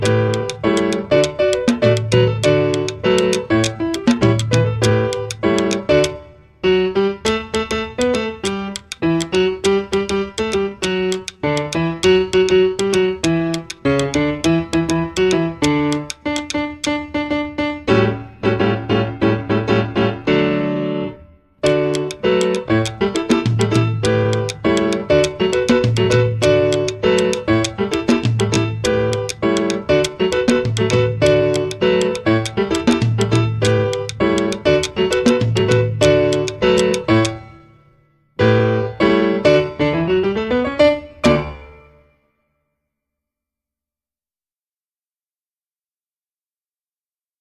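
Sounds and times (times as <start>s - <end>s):
jazz percussion: 0.0s - 6.2s, 7.3s - 17.0s, 21.6s - 37.5s
jazz piano: 0.0s - 42.1s.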